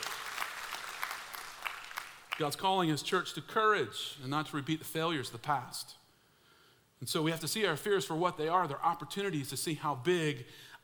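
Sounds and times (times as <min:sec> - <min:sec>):
audience applause: 0:00.0 - 0:02.4
speech: 0:02.4 - 0:06.0, 0:07.0 - 0:10.8.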